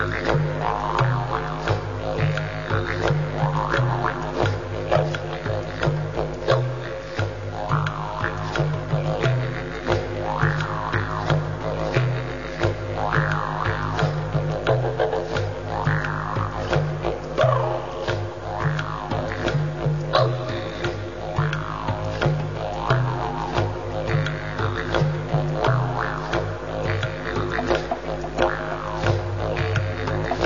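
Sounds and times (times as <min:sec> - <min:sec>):
tribal rhythm: 0:00.0 - 0:30.4.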